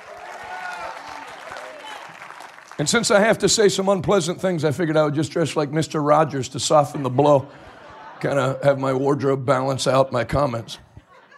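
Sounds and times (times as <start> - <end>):
audience clapping hands: 0.0 - 3.5
speech: 2.8 - 10.8
laughter: 6.7 - 11.3.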